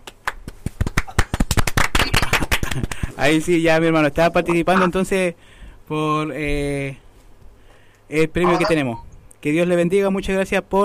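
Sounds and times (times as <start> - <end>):
applause: 0.0 - 3.2
speech: 2.8 - 7.0, 8.1 - 10.8.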